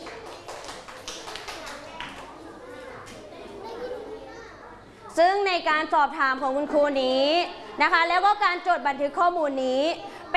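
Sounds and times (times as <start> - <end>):
children clapping hands: 0.0 - 2.4
children chattering: 0.0 - 10.3
speech: 5.2 - 10.1.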